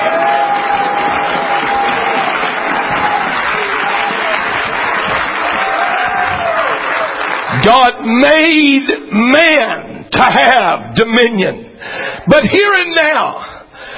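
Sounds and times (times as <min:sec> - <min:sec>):
audience clapping hands: 0:00.0 - 0:08.2
speech: 0:07.7 - 0:13.4.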